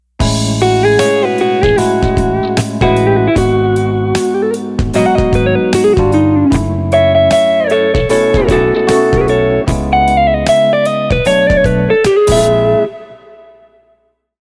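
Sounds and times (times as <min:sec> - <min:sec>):
guitar pattern: 0:00.2 - 0:14.0.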